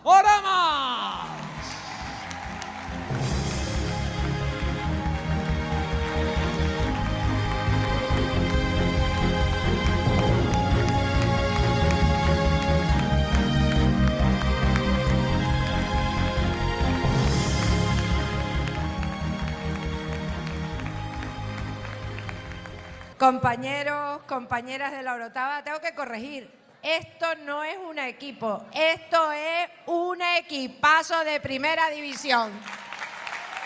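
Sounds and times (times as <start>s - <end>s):
audience applause: 1.0s - 23.2s, 32.6s - 33.6s
speech: 23.3s - 32.8s.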